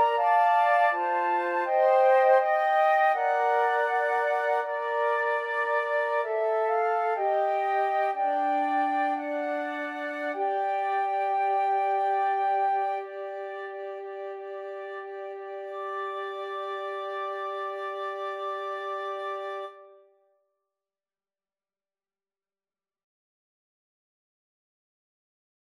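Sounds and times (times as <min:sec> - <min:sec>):
flute trio playing a pavane: 0:00.0 - 0:20.0.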